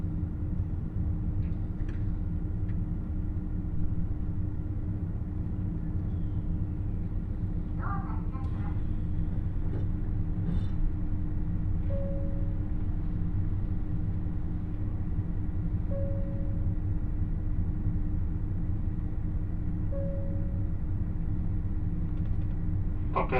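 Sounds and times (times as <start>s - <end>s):
constant hum aboard the limited express Nanpu 26: 0.0s - 23.3s
limited express Nanpu 26 interior rumble on the Dosan Line: 0.0s - 23.3s
short identical beeps: 11.9s - 12.6s, 15.9s - 16.7s, 19.9s - 20.7s.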